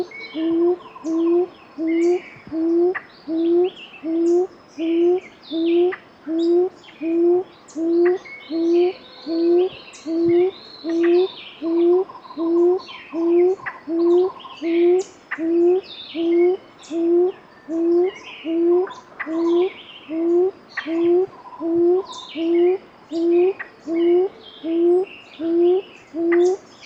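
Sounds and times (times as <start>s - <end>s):
gray-fronted quail-dove song of low hollow hooting notes in Soplillar Cuba: 0.0s - 26.6s.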